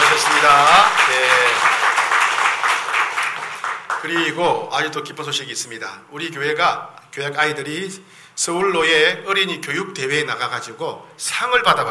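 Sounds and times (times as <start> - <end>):
audience applause: 0.0 - 4.4
speech: 4.0 - 11.8.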